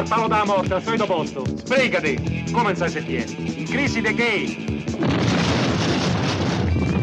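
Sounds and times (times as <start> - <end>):
speech: 0.0 - 5.2
bomb explosion: 5.0 - 7.0.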